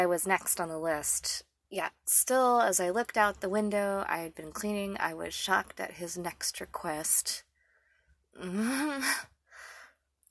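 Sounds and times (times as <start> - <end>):
speech: 0.0 - 7.5, 8.4 - 9.3
breathing close to someone's ear: 7.5 - 8.2, 9.4 - 10.1.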